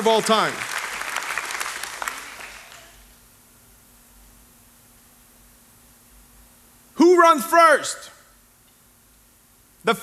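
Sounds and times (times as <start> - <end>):
speech: 0.0 - 0.6, 7.2 - 8.2, 9.8 - 10.0
church audience applauding: 0.0 - 3.1.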